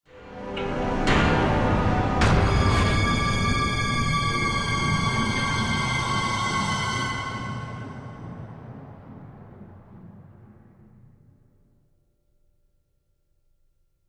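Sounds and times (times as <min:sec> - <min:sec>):
decreasing action stinger: 0:00.5 - 0:11.7.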